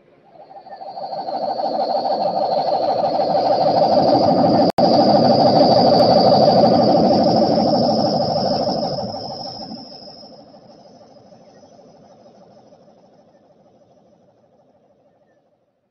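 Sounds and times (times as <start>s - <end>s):
thin high whine: 0.0s - 14.6s
roar of a passing meteor: 0.4s - 11.0s.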